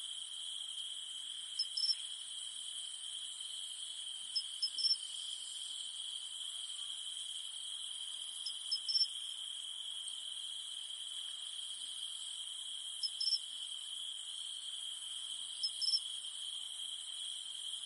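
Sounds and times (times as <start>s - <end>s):
cicada drone: 0.0s - 17.8s.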